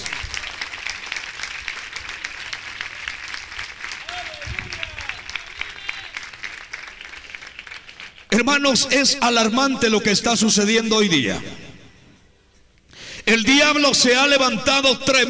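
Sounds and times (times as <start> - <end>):
audience clapping hands: 0.0 - 8.4
speech: 8.4 - 11.6, 13.7 - 15.2.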